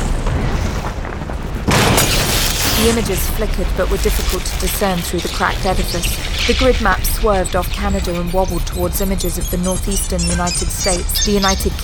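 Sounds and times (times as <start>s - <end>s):
ceiling pieces smashing into monitor: 0.0s - 4.8s
ceiling pieces collapsing: 0.0s - 11.8s
speech: 2.8s - 11.8s.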